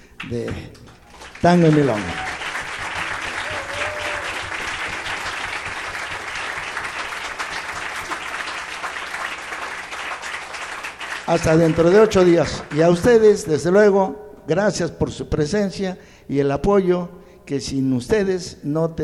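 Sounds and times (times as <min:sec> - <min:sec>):
audience clapping: 0:00.2 - 0:13.6
speech: 0:00.3 - 0:02.3, 0:11.3 - 0:19.0
faint cheering: 0:01.6 - 0:08.6.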